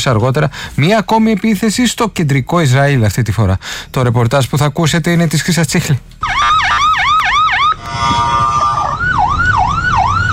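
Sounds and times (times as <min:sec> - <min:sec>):
speech: 0:00.0 - 0:06.6
traffic rumble: 0:00.0 - 0:10.3
air raid alarm sirens wailing: 0:06.2 - 0:10.3.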